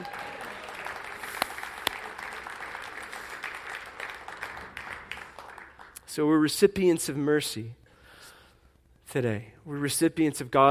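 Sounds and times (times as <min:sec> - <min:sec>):
audience applause: 0:00.0 - 0:06.0
speech: 0:06.2 - 0:07.8, 0:09.2 - 0:10.6.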